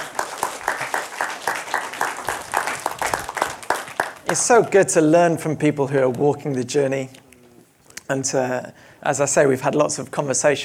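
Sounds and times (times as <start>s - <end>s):
crowd applauding: 0.0s - 4.8s
speech: 4.3s - 7.2s, 8.1s - 10.6s.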